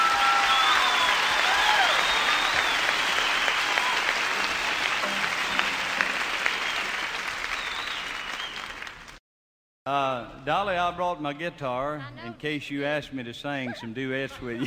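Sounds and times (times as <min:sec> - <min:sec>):
audience applause: 0:00.0 - 0:09.2
speech: 0:09.9 - 0:14.6.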